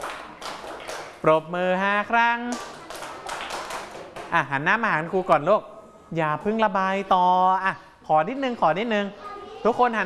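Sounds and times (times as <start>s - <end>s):
students clapping hands: 0.0s - 1.2s, 2.5s - 4.3s
speech: 1.2s - 2.7s, 4.3s - 10.0s.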